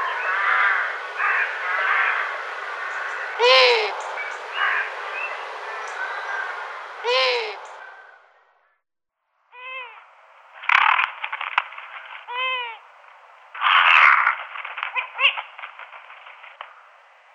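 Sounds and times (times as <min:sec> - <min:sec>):
Long-eared owl high squeaky calls: 0:00.0 - 0:07.7, 0:12.3 - 0:12.8, 0:13.6 - 0:15.6.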